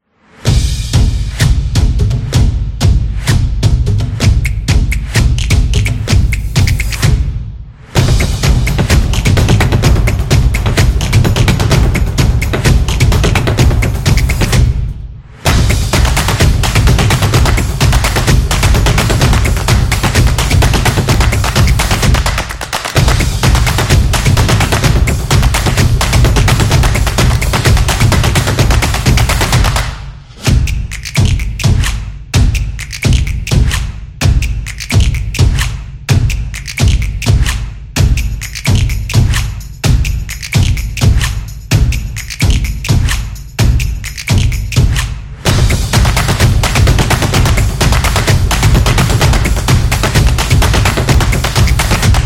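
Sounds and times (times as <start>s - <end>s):
drums on beat: 0.4s - 52.2s.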